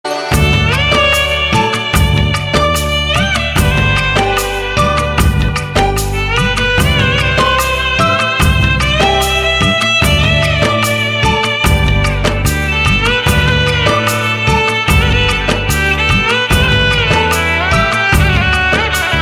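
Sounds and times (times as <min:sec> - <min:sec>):
instrumental ringtone: 0:00.1 - 0:18.8.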